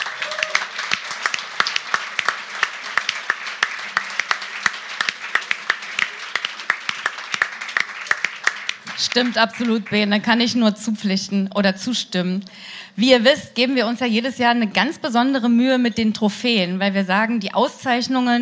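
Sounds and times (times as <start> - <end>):
audience applause: 0.0 - 10.2
speech: 9.1 - 18.3.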